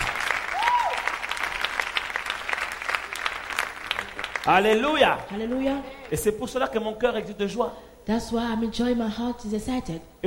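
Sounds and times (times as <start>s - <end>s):
audience clapping and applauding: 0.0s - 6.6s
speech: 4.4s - 10.2s.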